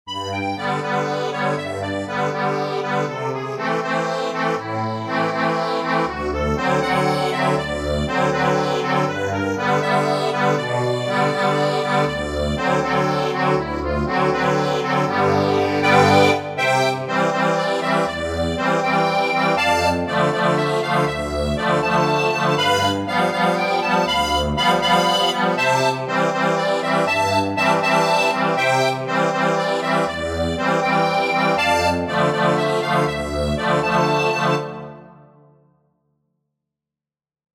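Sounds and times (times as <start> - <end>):
accordion: 0.0 - 35.4.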